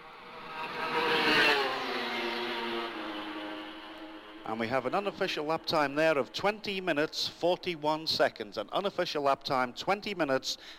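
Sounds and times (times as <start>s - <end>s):
Suzuki racing motorcycle passing at speed: 0.0s - 6.3s
speech: 4.5s - 10.7s.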